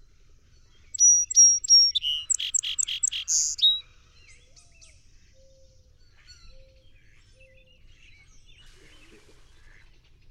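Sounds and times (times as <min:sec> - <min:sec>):
song sparrow singing: 0:00.8 - 0:03.8.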